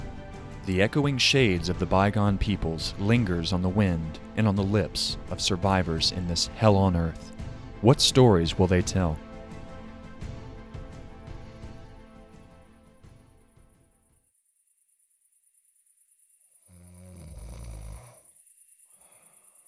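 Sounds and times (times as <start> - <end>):
speech: 0.7 - 9.2
heavy rasping snoring: 16.6 - 19.6.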